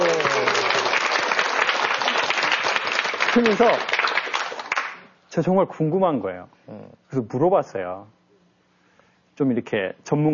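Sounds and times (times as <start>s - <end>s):
audience applause at a church talk: 0.0s - 5.0s
speech: 3.4s - 3.9s, 5.3s - 8.2s, 9.4s - 10.3s.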